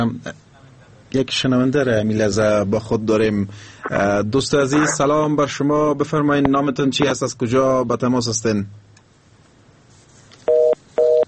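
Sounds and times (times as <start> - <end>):
speech: 0.0 - 0.4, 1.1 - 8.8
low hiss: 0.0 - 11.2
telephone busy tone after a caller's line is cut off: 10.5 - 11.2.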